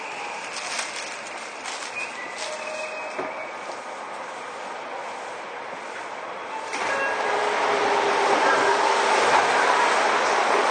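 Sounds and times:
Seibu 6000 series train running between Wakoshi and Shin-Kiba: 0.0 - 10.7.

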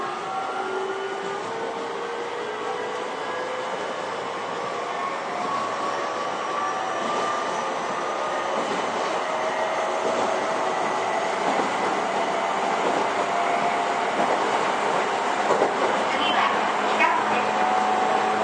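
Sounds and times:
Toei 10-300 series train rolling roar: 0.0 - 18.4
clacks and squeals: 5.4 - 14.5.

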